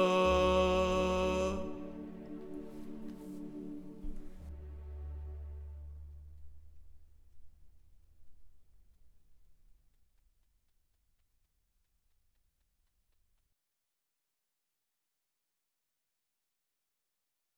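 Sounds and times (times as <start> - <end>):
tenors singing an opera barcarolle: 0.0 - 4.4.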